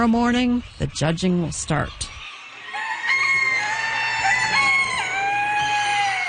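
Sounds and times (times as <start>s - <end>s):
speech: 0.0s - 2.2s
roosters crowing at a poultry show: 2.2s - 6.2s.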